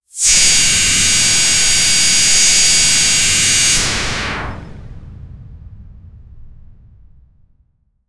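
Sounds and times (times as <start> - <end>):
sci-fi sounds: 0.2 - 4.9.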